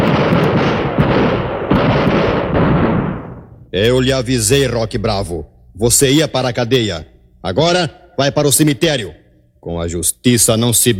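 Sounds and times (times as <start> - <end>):
barrage of gunshots in radio drama: 0.0 - 4.7
speech: 3.8 - 10.9.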